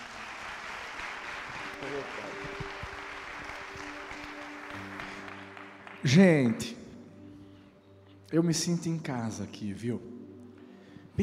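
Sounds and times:
audience applause: 0.0s - 6.7s
speech: 1.8s - 2.7s, 6.0s - 6.8s, 8.3s - 10.2s.

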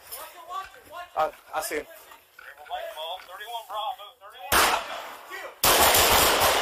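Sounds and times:
speech: 1.2s - 2.0s
rapid police gunfire inside a home: 5.6s - 6.6s.

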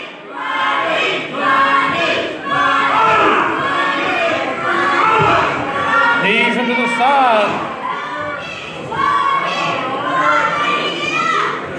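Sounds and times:
fight crowd cheering: 0.0s - 11.7s.

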